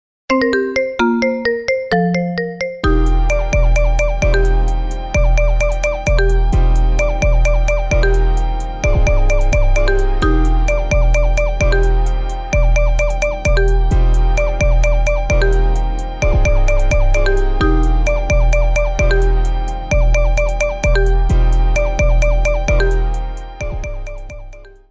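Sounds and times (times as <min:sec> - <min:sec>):
marimba: 0:00.3 - 0:24.9.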